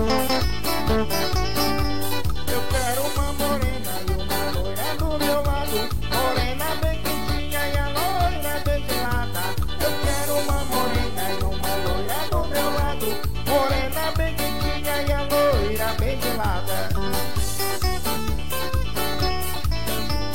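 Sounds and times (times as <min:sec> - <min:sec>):
guitarrada guitar music: 0:00.0 - 0:20.3.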